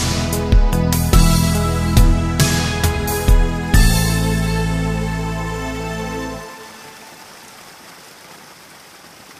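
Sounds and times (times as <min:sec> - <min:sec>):
beautiful waltz music: 0:00.0 - 0:07.1
nature sounds of rain: 0:02.4 - 0:09.3.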